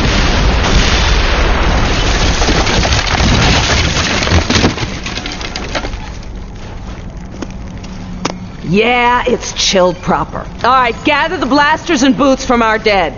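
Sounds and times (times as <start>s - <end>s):
barrage of grenade explosions: 0.0s - 5.6s
speech: 8.7s - 13.1s.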